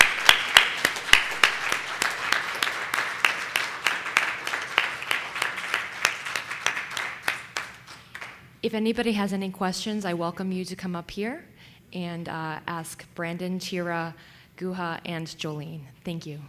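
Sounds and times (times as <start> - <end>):
audience applause thanking the speakers: 0.0 - 8.4
speech: 8.6 - 16.4.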